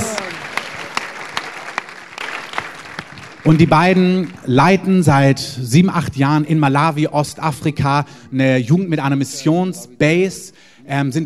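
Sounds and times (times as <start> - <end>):
audience applause: 0.0 - 4.6
speech: 3.4 - 11.2.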